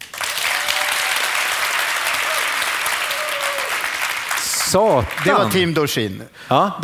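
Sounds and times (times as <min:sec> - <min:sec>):
audience applause: 0:00.0 - 0:05.8
speech: 0:04.7 - 0:06.8.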